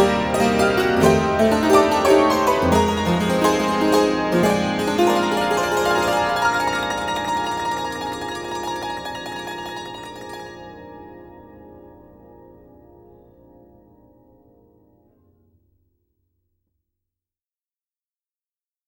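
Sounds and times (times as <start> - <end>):
saloon piano medley: 0.0 - 15.1.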